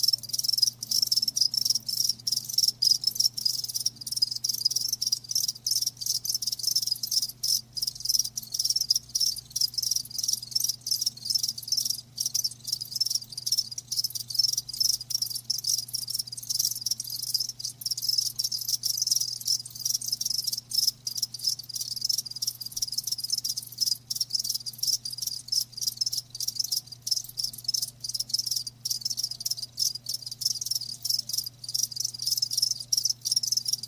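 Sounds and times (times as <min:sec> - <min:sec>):
many crickets chirping in chorus: 0:00.0 - 0:33.8.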